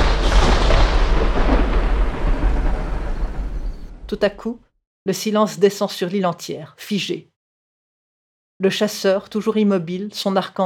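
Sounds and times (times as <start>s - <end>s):
single loud thunderclap: 0.0s - 4.2s
speech: 4.1s - 7.3s, 8.6s - 10.6s.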